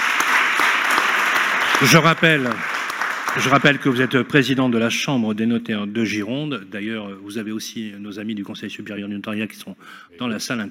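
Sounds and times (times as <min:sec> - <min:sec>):
audience applause: 0:00.0 - 0:04.6
speech: 0:01.8 - 0:02.7, 0:03.4 - 0:10.6.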